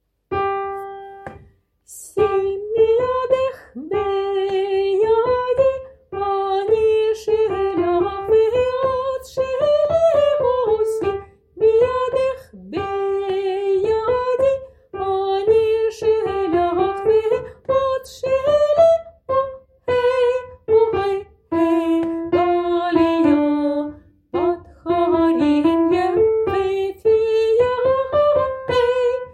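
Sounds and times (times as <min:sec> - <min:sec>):
soprano singing: 0:01.9 - 0:29.3.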